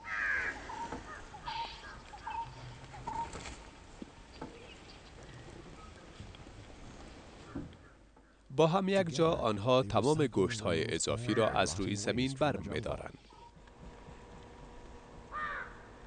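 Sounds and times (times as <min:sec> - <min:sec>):
crows cawing: 0:00.0 - 0:03.3, 0:07.4 - 0:08.4, 0:15.3 - 0:16.0
soft pattering and rustling: 0:01.9 - 0:08.3
speech: 0:08.6 - 0:13.2.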